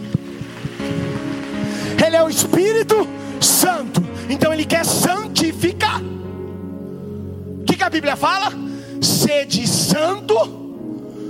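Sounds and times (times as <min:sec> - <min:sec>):
audience applauding: 0:00.0 - 0:03.1
speech: 0:02.0 - 0:05.5, 0:07.9 - 0:10.6.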